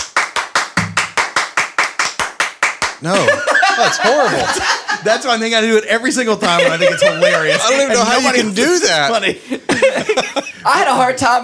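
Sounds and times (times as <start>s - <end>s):
hand clapping along to a count: 0.0s - 3.4s
speech: 3.0s - 11.4s
laughter: 3.1s - 11.2s.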